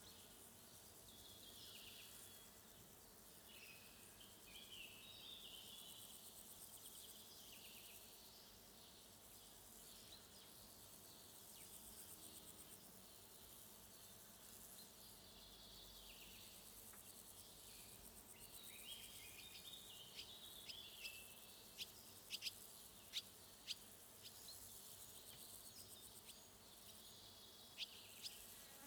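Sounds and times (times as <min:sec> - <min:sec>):
forest ambience on a June morning: 0:00.0 - 0:28.8.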